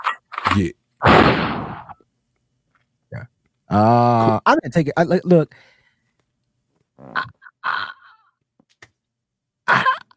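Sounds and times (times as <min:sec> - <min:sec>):
speech: 0:00.5 - 0:01.6, 0:03.2 - 0:05.7, 0:07.0 - 0:07.9
gunshot sound effect: 0:01.0 - 0:02.0.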